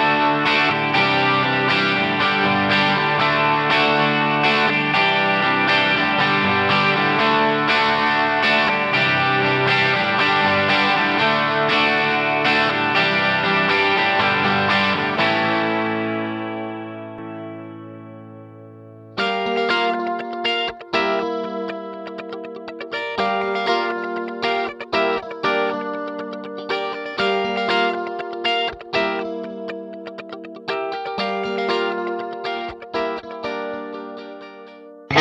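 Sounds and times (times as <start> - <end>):
Yamaha D5000 guitar with modulated delay effect: 0.0 - 35.1.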